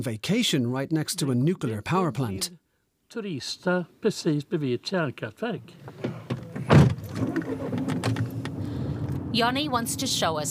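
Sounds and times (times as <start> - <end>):
speech: 0.0 - 6.1, 9.4 - 10.5
car engine hum driving along narrow forest paths: 5.8 - 10.5
dull thump: 5.9 - 8.5.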